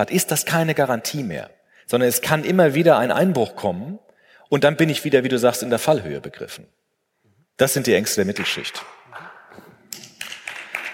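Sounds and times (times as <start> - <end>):
speech: 0.0 - 6.8, 7.6 - 9.0
audience clapping: 8.8 - 10.9.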